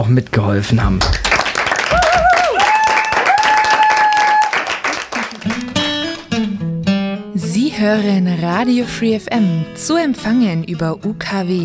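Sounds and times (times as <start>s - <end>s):
speech: 0.0s - 1.3s, 7.8s - 11.6s
crowd applauding: 1.0s - 6.5s
music: 5.4s - 11.6s.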